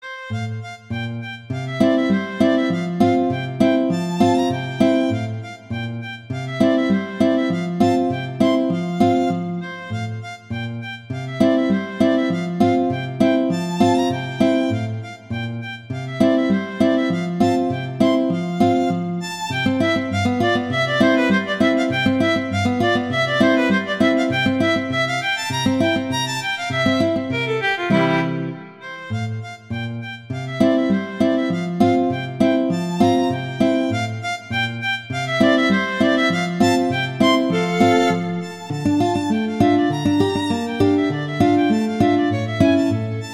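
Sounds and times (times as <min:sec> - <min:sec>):
violin and guitar piece: 0:00.0 - 0:43.3.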